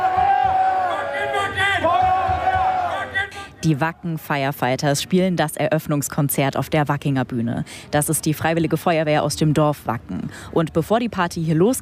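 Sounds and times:
festival crowd applauding: 0:00.0 - 0:03.4
festival crowd chanting: 0:00.0 - 0:04.2
speech: 0:03.6 - 0:11.7.

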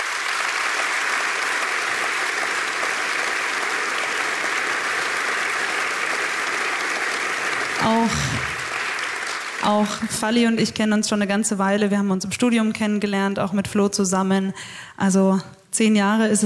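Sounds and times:
audience applause: 0:00.0 - 0:10.3
speech: 0:09.7 - 0:16.4.

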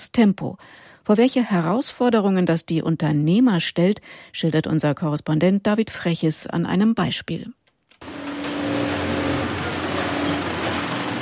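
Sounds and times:
speech: 0:00.1 - 0:08.2
industrial sewing machines stitching protective workwear: 0:08.0 - 0:11.2.

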